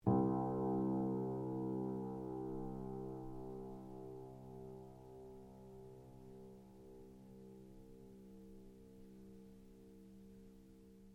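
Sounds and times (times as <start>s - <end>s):
out-of-tune baby grand piano: 0.0s - 11.1s.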